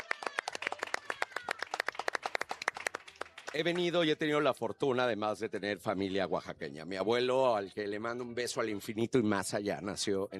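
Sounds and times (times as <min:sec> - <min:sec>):
audience clapping: 0:00.0 - 0:04.2
speech: 0:03.6 - 0:10.3.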